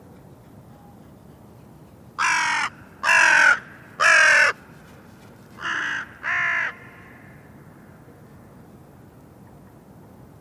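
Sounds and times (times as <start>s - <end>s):
bird cawing: 2.2s - 4.6s, 5.6s - 7.5s.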